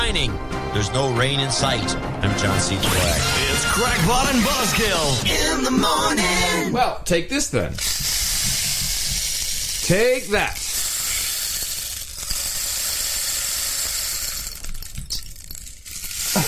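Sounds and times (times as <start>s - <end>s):
speech: 0.1s - 8.2s, 9.9s - 10.7s
rainstick shaken: 7.8s - 16.4s.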